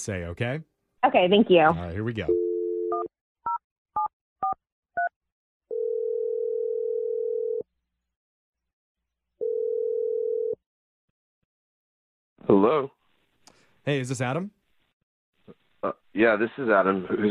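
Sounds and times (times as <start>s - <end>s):
speech: 0.0s - 2.4s, 12.4s - 13.0s, 13.8s - 14.6s, 15.5s - 17.2s
telephone ringing tone: 2.3s - 3.1s, 5.7s - 7.6s, 9.4s - 10.6s.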